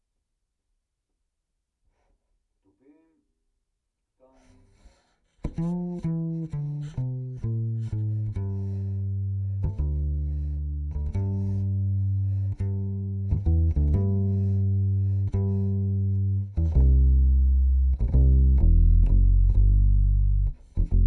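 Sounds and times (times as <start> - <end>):
direct-input contrabass: 5.4 - 21.0.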